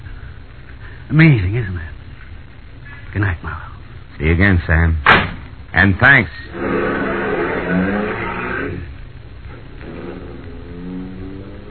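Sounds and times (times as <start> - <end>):
speech: 1.1 - 1.9, 3.1 - 6.9
car engine revving: 6.5 - 11.6.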